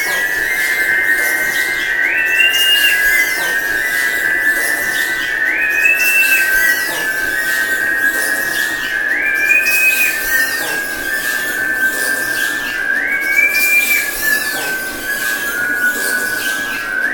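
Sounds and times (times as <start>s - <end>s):
jaw harp: 0.0s - 17.1s.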